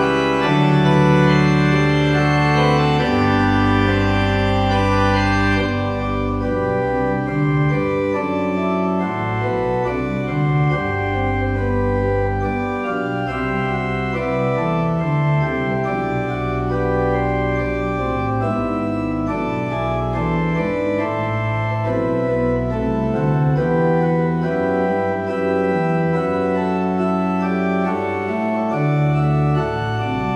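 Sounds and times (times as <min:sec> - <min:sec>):
trumpet in D playing: 0:00.0 - 0:06.4
organ playing: 0:00.0 - 0:30.3.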